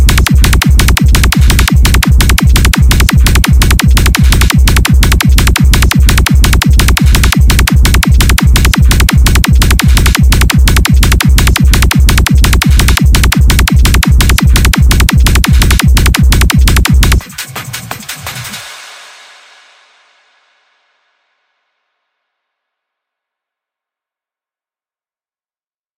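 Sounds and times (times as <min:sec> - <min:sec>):
90's hardstyle techno music: 0:00.0 - 0:20.4.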